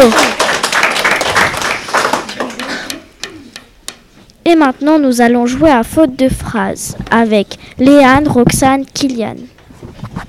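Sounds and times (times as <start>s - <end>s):
audience applause: 0.0s - 3.2s
speech: 4.6s - 9.6s.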